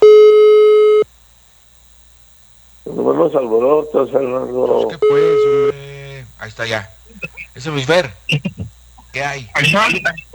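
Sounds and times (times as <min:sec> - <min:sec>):
telephone call tone beep, call unanswered: 0:00.0 - 0:01.0, 0:05.0 - 0:05.8
laughter: 0:02.9 - 0:10.3
speech: 0:03.2 - 0:05.8, 0:06.4 - 0:08.5, 0:09.2 - 0:10.3.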